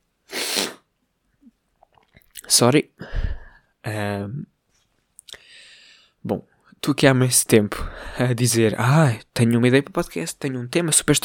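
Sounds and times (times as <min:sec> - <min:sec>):
person sniffling: 0:00.3 - 0:00.9
speech: 0:02.5 - 0:03.2, 0:06.2 - 0:11.2.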